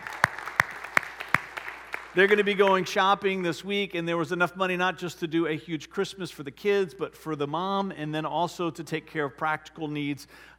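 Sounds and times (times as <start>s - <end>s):
applause: 0.0s - 2.9s
speech: 2.1s - 10.5s.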